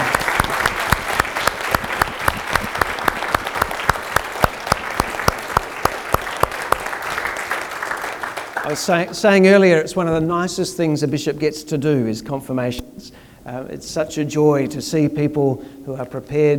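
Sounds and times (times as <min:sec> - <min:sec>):
congregation applauding at a church confirmation service: 0:00.0 - 0:09.4
speech: 0:08.7 - 0:12.8, 0:13.5 - 0:16.5.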